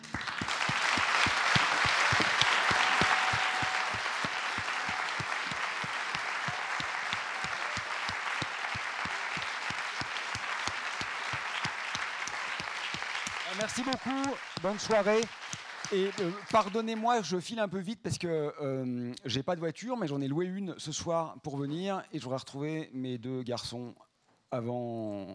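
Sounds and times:
audience applause: 0.0 - 17.2
speech: 13.8 - 25.3.

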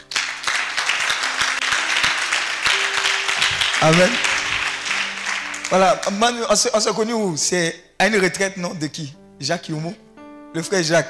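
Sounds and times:
church congregation applauding to acclaim God: 0.0 - 6.7
speech: 3.8 - 4.3, 5.7 - 11.0.

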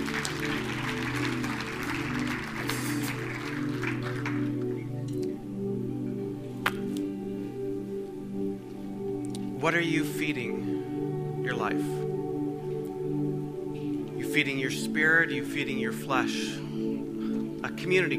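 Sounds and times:
audience applause in a church gathering: 0.0 - 4.8
sustained musical tones: 0.0 - 18.1
speech: 9.6 - 10.8, 11.5 - 12.0, 14.4 - 16.6, 17.8 - 18.1.

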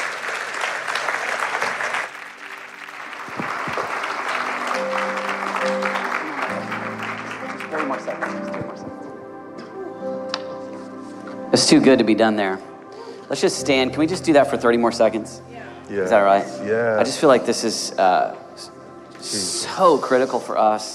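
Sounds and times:
audience applause: 0.0 - 8.8
speech: 11.6 - 12.7, 13.3 - 20.9.

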